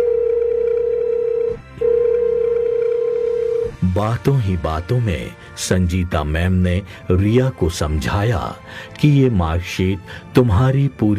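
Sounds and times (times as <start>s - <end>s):
telephone ringing: 0.0s - 3.7s
speech: 4.0s - 11.1s.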